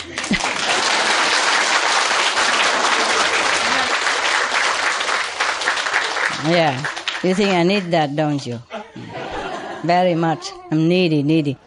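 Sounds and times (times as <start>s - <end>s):
laughter: 0.0s - 1.5s, 2.4s - 4.3s, 8.7s - 10.6s
audience applause: 0.0s - 8.2s
speech: 6.4s - 9.2s, 9.8s - 11.6s.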